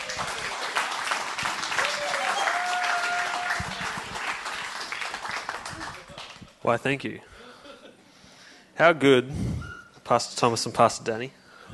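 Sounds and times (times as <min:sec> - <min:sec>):
church congregation applauding to welcome a pastor: 0:00.0 - 0:06.6
speech: 0:06.6 - 0:07.3, 0:08.8 - 0:11.4.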